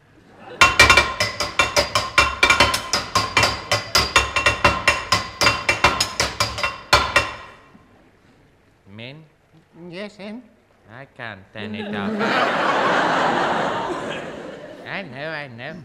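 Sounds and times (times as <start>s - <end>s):
laughter: 0.1s - 0.8s, 11.6s - 15.5s
hammer striking a metal tap: 0.6s - 7.7s
speech: 11.0s - 14.1s, 15.0s - 15.8s.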